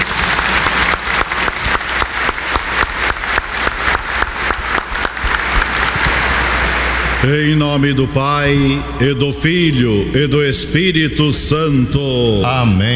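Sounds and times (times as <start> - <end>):
applause: 0.0 - 7.9
speech: 7.2 - 12.9.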